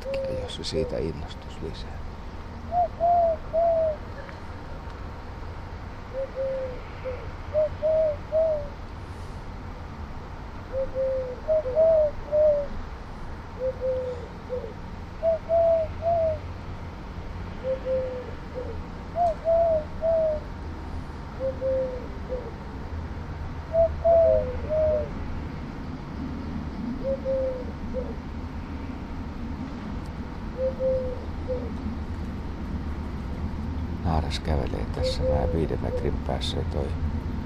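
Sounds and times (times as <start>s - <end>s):
male collared dove cooing in a treetop: 0.0s - 1.4s, 2.6s - 4.4s, 6.1s - 8.8s, 10.7s - 12.8s, 13.6s - 16.4s, 17.6s - 20.5s, 21.4s - 22.7s, 23.6s - 25.2s, 26.8s - 28.3s, 30.4s - 32.0s, 34.4s - 36.5s
faint hum: 0.0s - 37.4s
speech: 0.5s - 2.0s, 10.8s - 12.5s, 34.3s - 37.0s.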